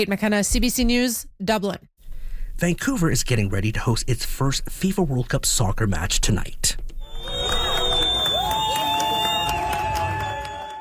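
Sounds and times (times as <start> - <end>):
speech: 0.0 - 1.9, 2.6 - 6.9
soccer fans greeting the Turkish national team bus in Vancouver: 7.0 - 10.7.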